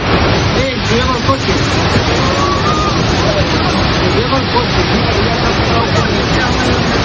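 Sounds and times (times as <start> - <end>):
flash flood torrent rushing through village streets: 0.0 - 7.0.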